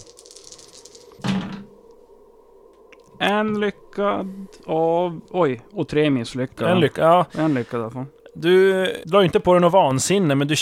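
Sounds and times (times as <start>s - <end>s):
dice being rolled: 0.0s - 1.3s
speech: 3.2s - 10.6s.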